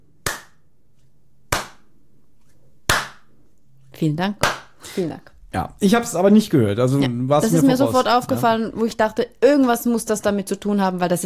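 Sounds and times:
hand claps: 0.2 - 0.6, 1.5 - 1.9, 2.9 - 3.3, 4.4 - 4.8
speech: 4.0 - 11.2.

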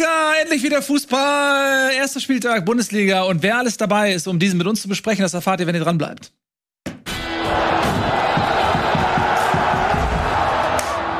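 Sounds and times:
speech: 0.0 - 6.4
crowd applause: 7.3 - 11.1.

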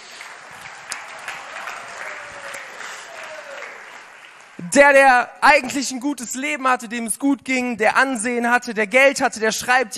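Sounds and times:
crowd applauding: 0.0 - 4.7
speech: 4.6 - 9.9.

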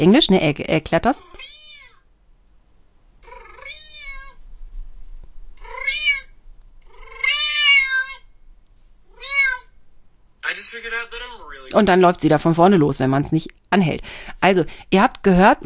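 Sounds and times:
speech: 0.0 - 1.5, 10.7 - 15.6
cat meowing in reply to a man: 1.2 - 2.1, 3.2 - 4.4, 5.6 - 8.3, 9.1 - 9.8.

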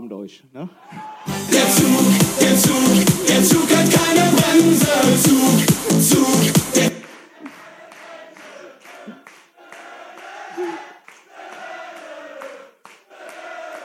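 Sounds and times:
speech: 0.1 - 6.9
audience clapping along in rhythm at a German party: 1.3 - 13.8
crowd group singing or chanting: 1.3 - 13.8.

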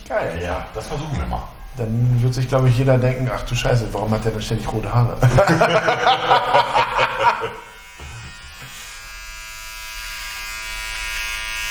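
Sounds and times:
speech: 0.1 - 7.7
laughter: 5.2 - 7.7
electric trimmer shaving hair on nose: 6.4 - 11.6.

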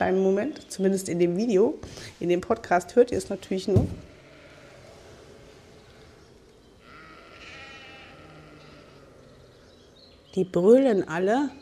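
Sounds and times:
speech: 0.0 - 4.1, 10.4 - 11.6
flock of sheep bleating: 4.1 - 9.5.

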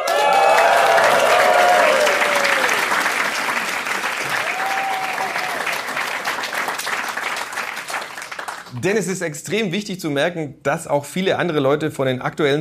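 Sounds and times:
audience whistles and cheers: 0.0 - 3.2, 4.2 - 6.0
live audience applause: 0.0 - 8.8
speech: 8.8 - 12.5.

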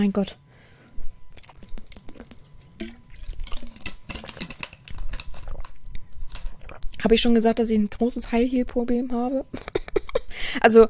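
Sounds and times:
speech: 0.0 - 0.4, 7.0 - 9.8, 10.5 - 10.8
person drinking a sip of water: 1.3 - 7.0.

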